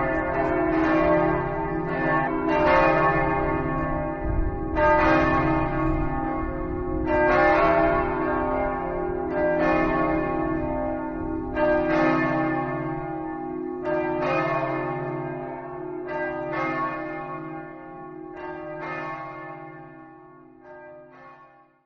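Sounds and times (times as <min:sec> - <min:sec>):
church bells ringing in Cividale: 0:00.0 - 0:21.8.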